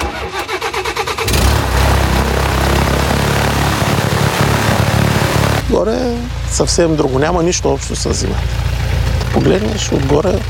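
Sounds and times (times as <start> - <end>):
small airplane engine starting: 0.0 - 5.6, 8.0 - 10.4
speech: 5.7 - 8.7, 9.3 - 10.4.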